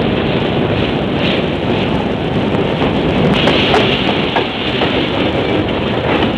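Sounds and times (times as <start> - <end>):
train arriving, rumble and rattle of wagons: 0.0 - 6.3
wind noise: 0.0 - 6.3.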